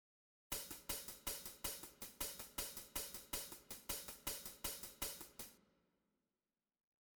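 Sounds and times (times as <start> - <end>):
drum click: 0.5 - 5.5.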